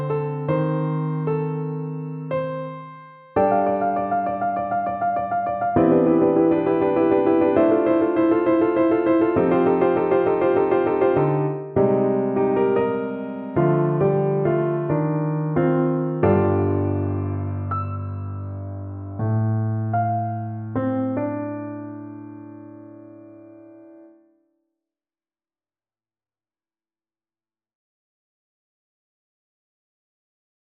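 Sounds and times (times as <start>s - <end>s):
piano: 0.0s - 24.4s.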